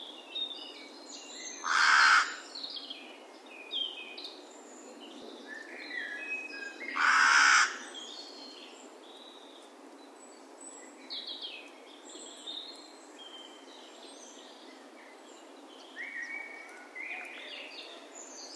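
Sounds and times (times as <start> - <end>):
carrion crow cawing coarsely: 1.6 - 2.4, 7.0 - 7.9.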